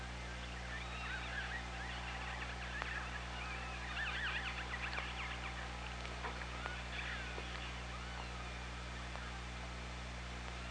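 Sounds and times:
low hum: 0:00.0 - 0:10.7
killer whale calling underwater: 0:00.6 - 0:08.8.

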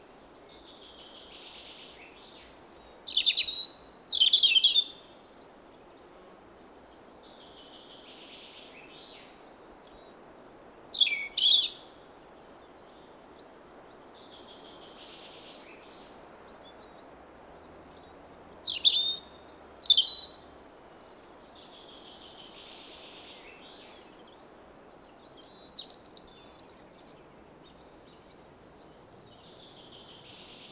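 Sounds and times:
European robin singing: 0:02.8 - 0:05.6, 0:08.5 - 0:11.9, 0:12.8 - 0:30.6.

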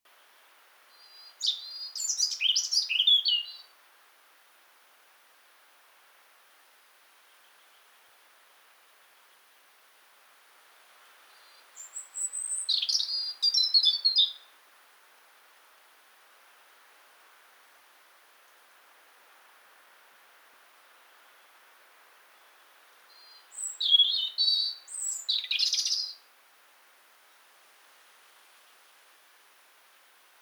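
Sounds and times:
European robin singing: 0:00.9 - 0:03.8, 0:11.3 - 0:14.5, 0:22.4 - 0:26.3.

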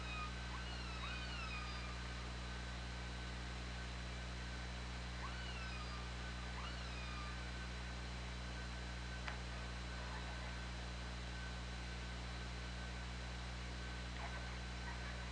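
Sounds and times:
killer whale calls: 0:00.0 - 0:02.0, 0:05.2 - 0:07.4
continuous low hum: 0:00.0 - 0:15.3.

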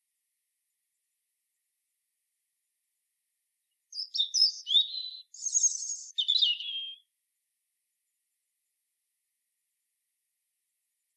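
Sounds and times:
European robin singing: 0:03.9 - 0:07.1.

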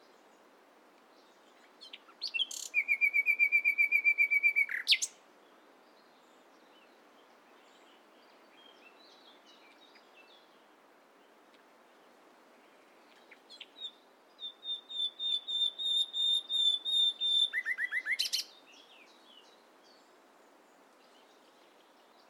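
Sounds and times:
Common nightingale Luscinia megarhynchos whistled song: 0:01.8 - 0:05.2, 0:13.3 - 0:20.0.

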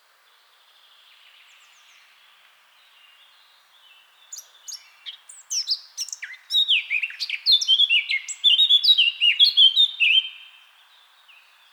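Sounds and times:
Eurasian blackcap singing: 0:04.3 - 0:10.4.

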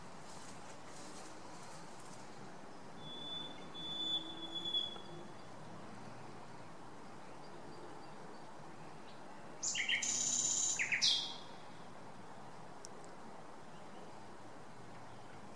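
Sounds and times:
common nightingale Luscinia megarhynchos singing whistled rattling and clicking phrases: 0:03.0 - 0:05.5, 0:07.2 - 0:11.6.

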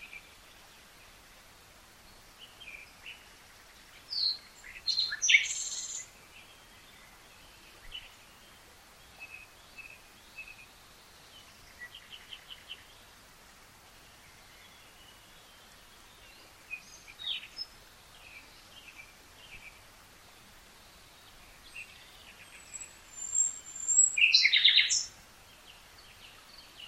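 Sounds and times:
Common nightingale Luscinia megarhynchos singing: 0:03.9 - 0:13.0, 0:14.5 - 0:19.8, 0:20.9 - 0:26.8.

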